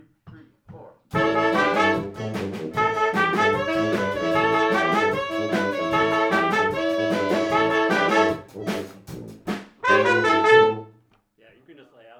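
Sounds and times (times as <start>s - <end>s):
beat: 0.3s - 10.8s.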